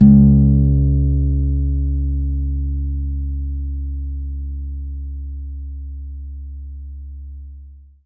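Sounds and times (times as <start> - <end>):
acoustic bass note C#2: 0.0 - 6.3.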